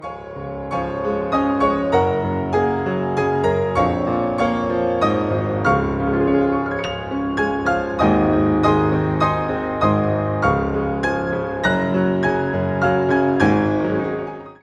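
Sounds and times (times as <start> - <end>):
music medley: 0.3 - 14.5.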